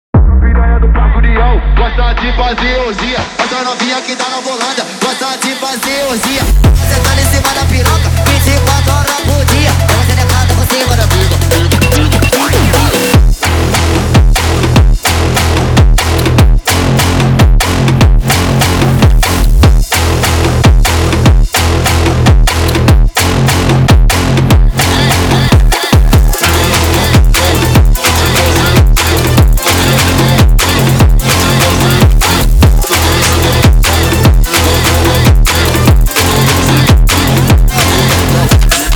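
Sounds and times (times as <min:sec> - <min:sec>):
sped-up phonk music: 0:00.1 - 0:38.9.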